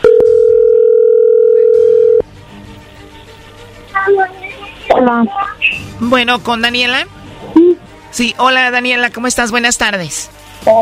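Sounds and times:
telephone call ringing tone: 0.0 - 2.2
speech: 5.0 - 7.2, 8.1 - 10.8.

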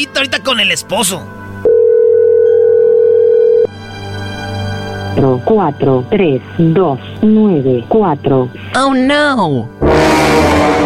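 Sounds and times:
speech: 0.0 - 1.4, 5.2 - 10.8
telephone dial tone while placing a prank call: 1.7 - 3.7.

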